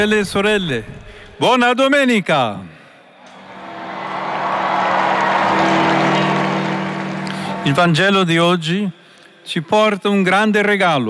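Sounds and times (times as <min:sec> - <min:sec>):
speech: 0:00.0 - 0:02.7, 0:07.6 - 0:11.0
crowd in St. Peter's Square: 0:03.0 - 0:08.4.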